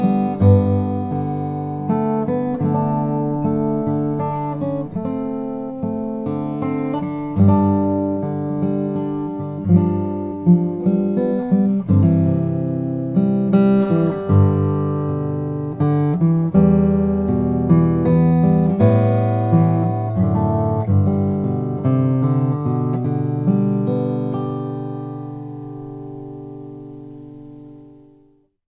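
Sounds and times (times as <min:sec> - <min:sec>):
dreadnought acoustic guitar with pau ferro: 0:00.0 - 0:28.5.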